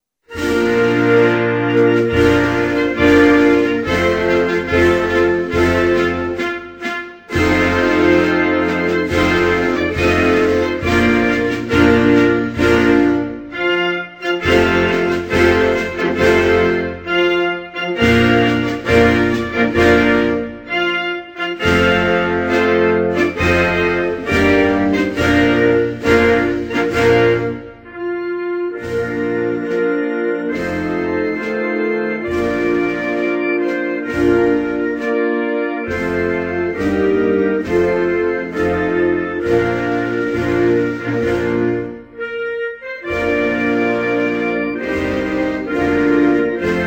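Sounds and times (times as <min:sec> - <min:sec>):
national anthem: 0:00.3 - 0:46.8.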